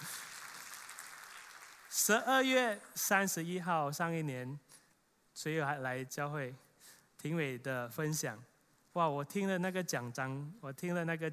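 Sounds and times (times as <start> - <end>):
audience applause: 0.0 - 2.1
speech: 2.0 - 4.6, 5.4 - 6.6, 7.2 - 11.3.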